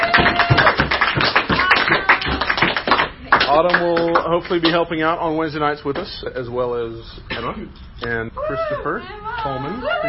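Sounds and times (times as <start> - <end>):
group of people clapping together: 0.0 - 4.9
speech: 3.6 - 10.0.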